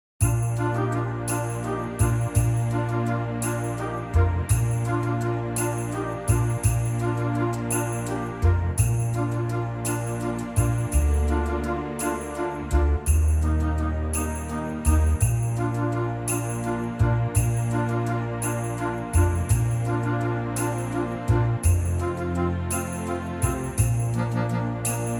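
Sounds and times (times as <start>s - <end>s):
orchestral backing track in B flat: 0.2s - 25.1s.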